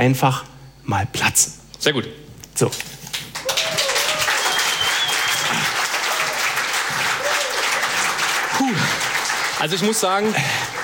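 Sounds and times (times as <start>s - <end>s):
speech: 0.0s - 3.0s, 9.6s - 10.7s
audience applause: 3.1s - 10.8s.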